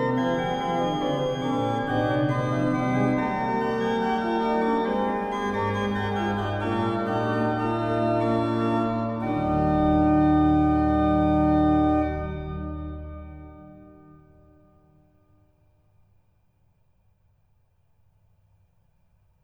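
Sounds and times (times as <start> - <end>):
organ prelude and fugue: 0.0 - 14.6.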